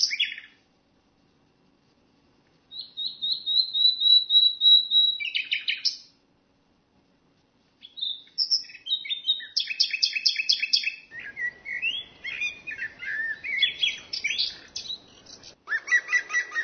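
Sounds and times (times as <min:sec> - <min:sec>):
common nightingale singing: 0:00.0 - 0:00.6, 0:02.7 - 0:06.2, 0:07.8 - 0:16.6.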